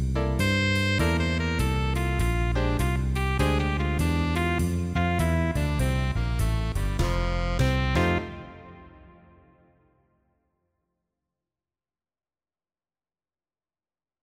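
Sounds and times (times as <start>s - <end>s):
play along guitar: 0.0s - 9.7s.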